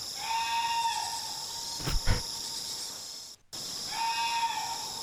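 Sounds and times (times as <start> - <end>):
barking deer call: 0.1 - 1.2, 3.9 - 4.9.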